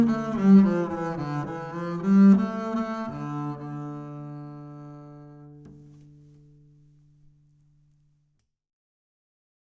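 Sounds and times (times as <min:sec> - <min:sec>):
bowed acoustic bass on 25cm high mid C: 0:00.0 - 0:07.4.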